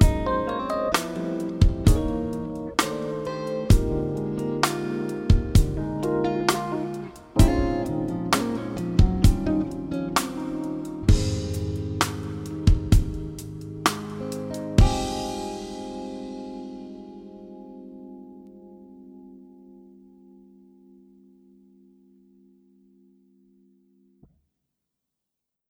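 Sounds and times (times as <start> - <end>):
jazz bass playing a smooth ballad: 0.0 - 17.2.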